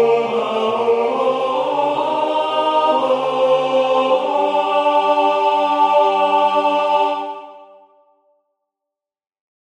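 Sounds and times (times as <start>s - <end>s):
tenor voice singing: 0.0s - 7.8s.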